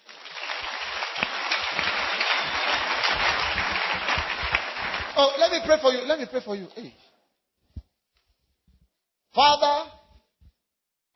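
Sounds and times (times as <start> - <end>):
crowd applauding: 0.0 - 5.8
speech: 5.2 - 7.0, 9.4 - 10.0.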